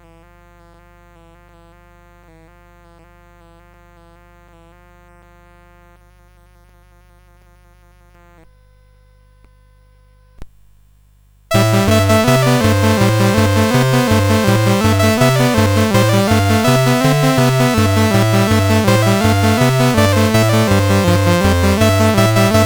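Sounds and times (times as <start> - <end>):
balalaika playing: 11.5 - 22.6.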